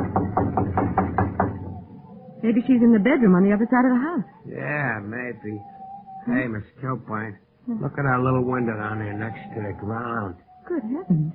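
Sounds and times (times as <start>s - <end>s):
knocking on a kitchen door: 0.0s - 1.8s
speech: 2.4s - 11.3s.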